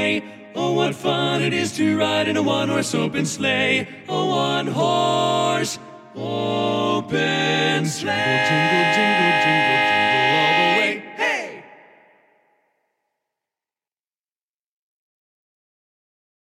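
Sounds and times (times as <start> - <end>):
tenor singing: 0.0 - 12.0.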